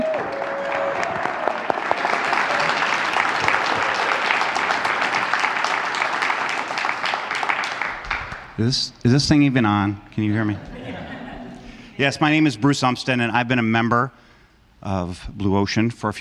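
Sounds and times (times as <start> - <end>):
audience applause welcoming a speaker: 0.0 - 8.6
speech: 8.6 - 10.7, 12.0 - 14.2, 14.8 - 16.1
laughter: 10.4 - 12.2.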